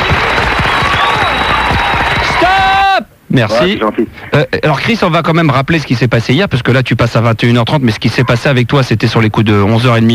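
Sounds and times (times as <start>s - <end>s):
audience applause on a French radio show: 0.0s - 2.8s
speech: 3.4s - 10.1s.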